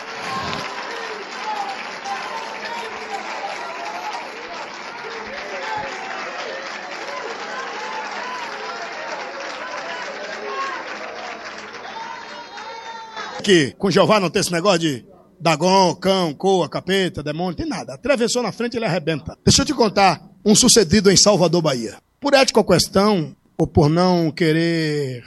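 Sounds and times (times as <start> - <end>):
voices and cheers: 0.0 - 13.6
audience applause: 0.0 - 14.0
speech: 13.5 - 25.2.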